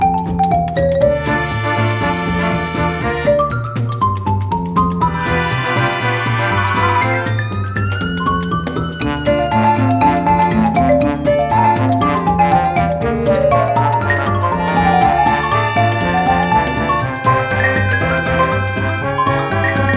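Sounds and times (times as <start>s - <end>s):
vintage xylophone: 0.0s - 19.9s.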